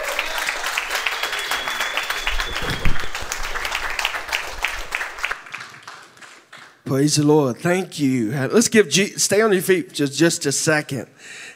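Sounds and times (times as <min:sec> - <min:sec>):
church congregation at Activation Church clapping for a guest pastor: 0:00.0 - 0:06.9
speech: 0:06.9 - 0:11.5.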